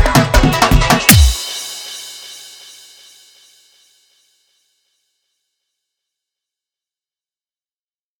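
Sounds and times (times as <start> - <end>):
dholki dance mix music: 0.0 - 2.6.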